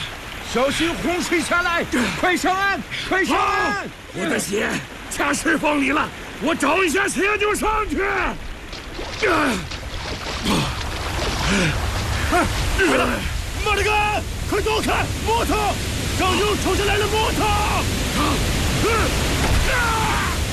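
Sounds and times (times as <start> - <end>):
floodwater rushing down a river at a crossing: 0.0 - 20.5
people shouting at a river crossing: 12.8 - 20.5.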